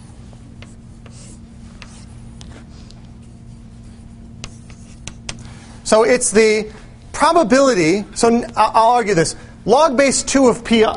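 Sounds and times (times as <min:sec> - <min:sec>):
handwriting strokes scratching as a math expression is written: 0:00.0 - 0:05.6
steady low hum: 0:00.0 - 0:10.9
speech: 0:05.9 - 0:10.9.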